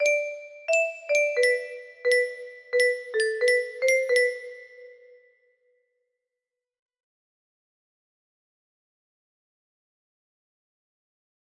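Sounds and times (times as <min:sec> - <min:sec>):
music box melody: 0:00.0 - 0:05.2.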